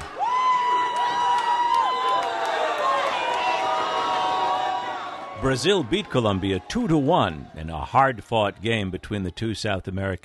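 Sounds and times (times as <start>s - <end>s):
high whoops: 0.0s - 5.4s
crowd cheering in joy and relief: 0.0s - 10.2s
speech: 5.4s - 10.2s.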